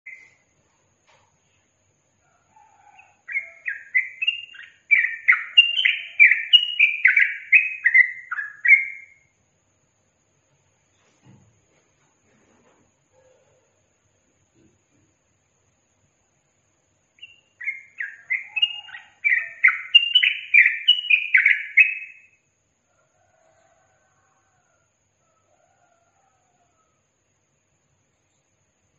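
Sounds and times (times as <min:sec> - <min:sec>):
yellow-vented bulbul singing: 0:02.8 - 0:09.3, 0:17.1 - 0:22.4.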